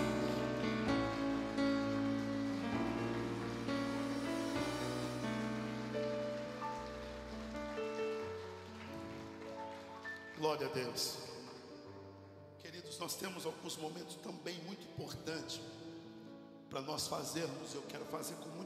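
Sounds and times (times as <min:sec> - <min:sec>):
sustained organ-like chords: 0:00.0 - 0:09.2
audience applauding: 0:00.0 - 0:11.7
speech: 0:10.4 - 0:11.3, 0:13.0 - 0:15.8, 0:16.7 - 0:18.6.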